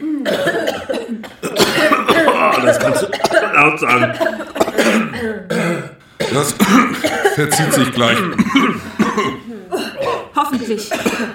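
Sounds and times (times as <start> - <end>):
person coughing from too much smoke: 0.1 - 11.3
laughter: 1.8 - 4.6, 6.4 - 8.9
speech: 3.6 - 4.3, 6.4 - 9.4, 10.5 - 11.3.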